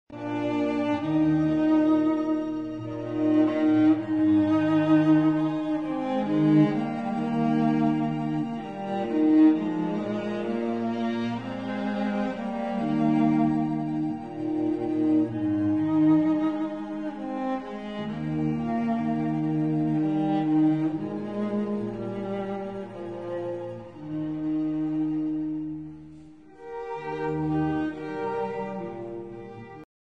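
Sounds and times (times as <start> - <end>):
string quartet playing a lullaby: 0.1 - 29.9.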